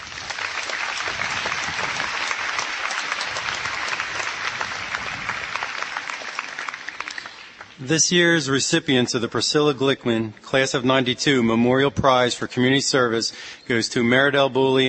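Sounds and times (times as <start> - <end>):
applause from a large audience: 0.0 - 7.8
speech: 7.8 - 14.8.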